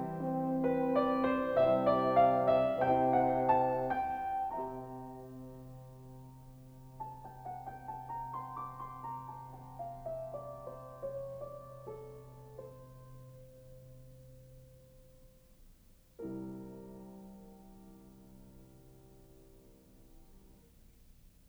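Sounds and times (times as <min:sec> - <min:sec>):
horn: 0:00.0 - 0:06.6.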